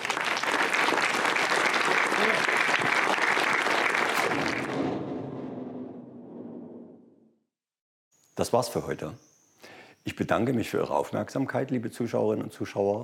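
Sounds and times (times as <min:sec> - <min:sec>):
thunderous applause from a large crowd: 0:00.0 - 0:06.9
speech: 0:08.4 - 0:09.3, 0:10.0 - 0:13.0.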